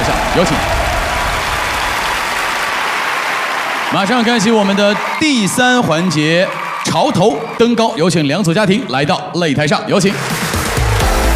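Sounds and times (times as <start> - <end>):
audience applause: 0.0 - 8.0, 10.2 - 11.3
speech: 0.4 - 0.8, 3.9 - 10.4.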